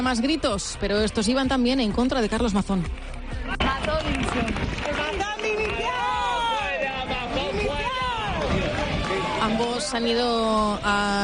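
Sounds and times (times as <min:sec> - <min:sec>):
speech: 0:00.0 - 0:06.1, 0:09.5 - 0:11.2
crowd applauding and cheering: 0:03.1 - 0:11.2.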